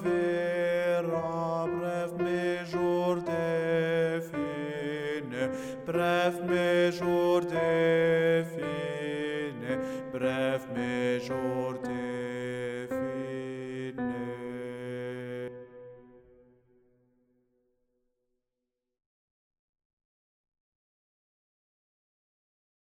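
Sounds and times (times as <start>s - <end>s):
alto voice singing a part: 0.0s - 16.2s.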